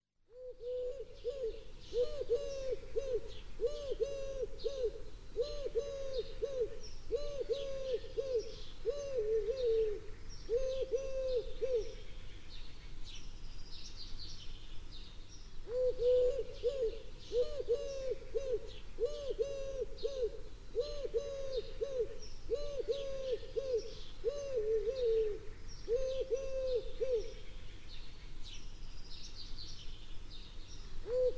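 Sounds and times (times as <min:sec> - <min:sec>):
turtle dove singing: 0:00.3 - 0:12.0, 0:15.6 - 0:27.4, 0:31.0 - 0:31.3.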